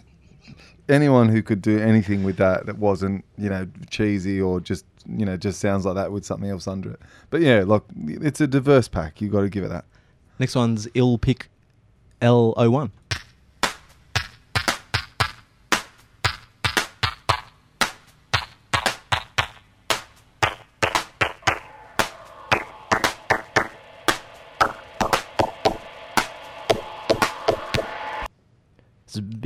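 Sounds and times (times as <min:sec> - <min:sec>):
speech: 0:00.9 - 0:11.5, 0:12.2 - 0:13.0
punchy drum break with high-to-low filter sweep: 0:13.1 - 0:28.3.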